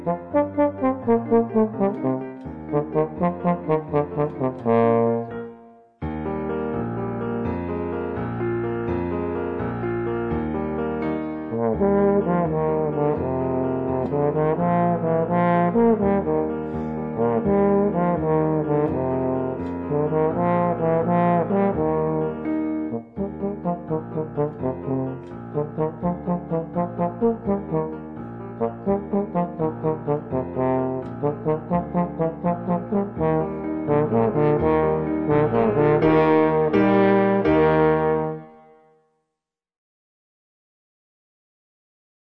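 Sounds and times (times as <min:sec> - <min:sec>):
trombone playing: 0:00.0 - 0:05.9, 0:11.5 - 0:28.0, 0:28.6 - 0:38.8
musical accompaniment: 0:00.0 - 0:39.0.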